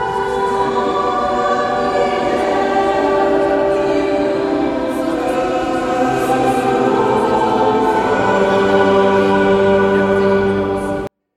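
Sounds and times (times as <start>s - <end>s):
full ensemble playing: 0.2s - 11.1s.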